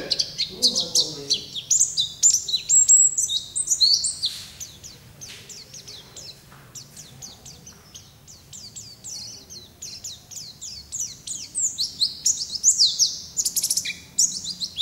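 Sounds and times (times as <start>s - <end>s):
white-eye twittering song: 0.0s - 14.7s.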